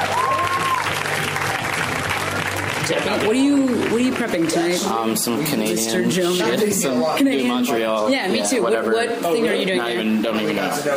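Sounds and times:
audience clapping for a comedian at a comedy show: 0.0 - 5.6
crowd noise at a comedy show: 0.0 - 10.9
speech: 3.1 - 10.9.

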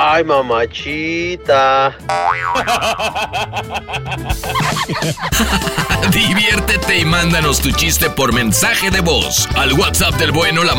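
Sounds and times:
speech: 0.2 - 10.7
cartoon spring boing sound effect: 2.1 - 2.8
laughter: 2.6 - 6.8.

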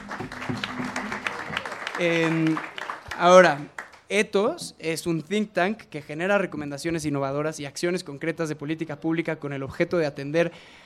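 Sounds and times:
audience applause: 0.0 - 4.0
speech: 2.0 - 10.8.

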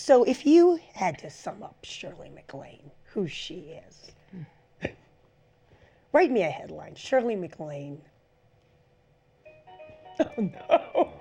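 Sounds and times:
speech: 0.0 - 5.0, 6.1 - 8.1, 10.2 - 11.1
mobile phone ringtone: 9.5 - 10.8.

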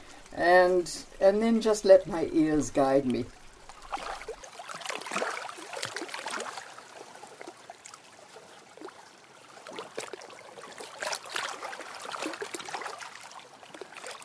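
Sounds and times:
fast-flowing river water: 0.0 - 14.2
speech: 0.3 - 3.4.

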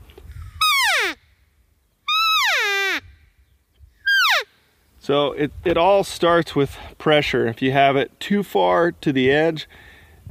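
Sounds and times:
elk call blown on a reed call: 0.5 - 1.3, 2.0 - 3.2, 4.0 - 4.6
speech: 5.1 - 9.9.

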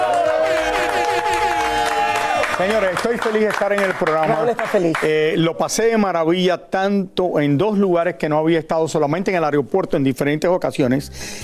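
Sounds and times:
audience applause: 0.0 - 5.3
speech: 2.6 - 11.4.

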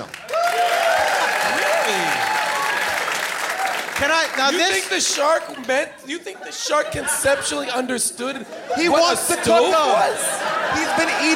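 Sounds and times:
audience applause: 0.0 - 5.8
speech: 4.0 - 11.3
laughter: 4.5 - 11.3.

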